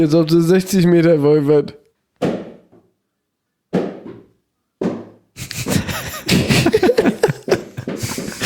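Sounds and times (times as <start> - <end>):
speech: 0.0 - 1.8
bouncy ball slammed onto the floor: 2.2 - 2.8, 3.7 - 5.2
laughter: 5.4 - 8.4.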